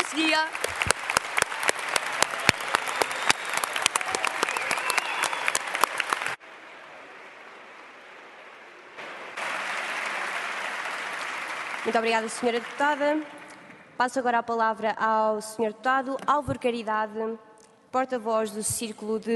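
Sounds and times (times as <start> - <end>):
audience applause: 0.0 - 13.7
speech: 0.4 - 0.8, 11.9 - 13.4, 14.0 - 19.3.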